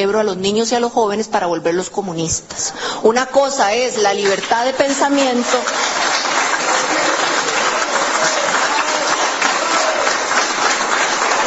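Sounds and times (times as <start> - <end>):
speech: 0.0 - 6.1
audience applause: 4.0 - 11.4.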